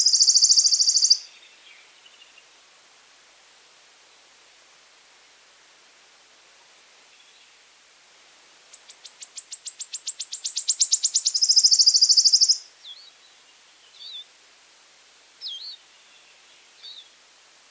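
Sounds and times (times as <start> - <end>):
wood warbler song with ticks ending in a sizzling trill: 0.0 - 2.7, 8.6 - 14.4, 15.4 - 17.2.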